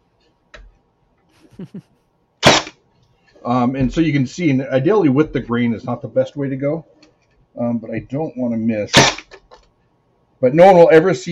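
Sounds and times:
speech: 1.6s - 2.0s, 3.4s - 7.0s, 7.6s - 9.2s, 10.4s - 11.3s
electric staple gun driving a staple into a wooden ammo can insert: 9.0s - 9.4s.

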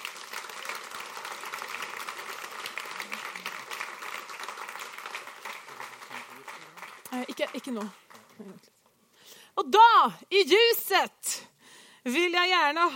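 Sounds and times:
audience applause: 0.0s - 8.7s
speech: 7.2s - 8.8s, 9.6s - 11.4s, 12.0s - 12.9s.

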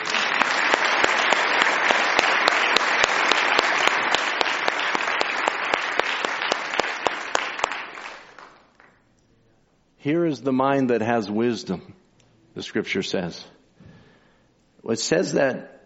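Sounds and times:
audience applause: 0.0s - 9.0s
speech: 10.0s - 12.0s, 12.6s - 13.6s, 14.9s - 15.8s.

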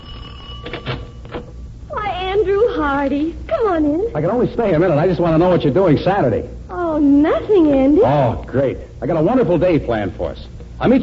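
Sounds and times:
doorbell ringing: 0.0s - 1.7s
speech: 2.5s - 11.0s.

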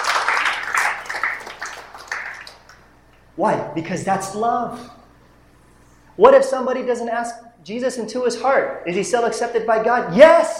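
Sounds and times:
audience applause: 0.0s - 2.8s
speech: 3.4s - 5.0s, 6.2s - 10.5s.

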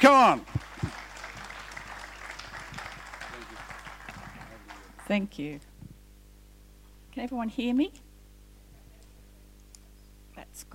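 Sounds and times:
speech: 0.0s - 0.6s, 5.1s - 5.7s, 7.2s - 8.0s, 10.6s - 10.7s
faint audience applause at a community mental health event: 0.0s - 5.2s
low steady hum: 0.0s - 10.7s.

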